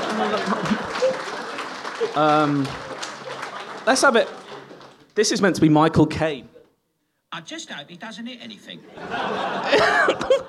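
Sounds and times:
laughter: 0.0 - 5.0, 8.8 - 10.4
live audience applause: 0.0 - 5.5
speech: 2.0 - 2.9, 3.9 - 4.4, 5.2 - 6.5, 7.3 - 10.4.

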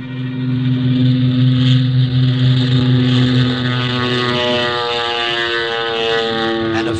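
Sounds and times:
small propeller plane engine roaring as it powers up for takeoff: 0.0 - 6.9.

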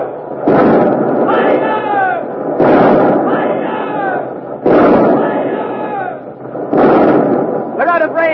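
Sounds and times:
warship cannons firing a broadside: 0.0 - 8.3
people shouting: 1.2 - 6.3.

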